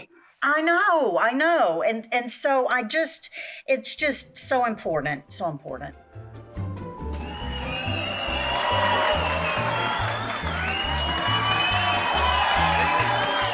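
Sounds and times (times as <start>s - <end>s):
speech: 0.4s - 6.0s
crowd cheering and applauding: 7.1s - 13.5s.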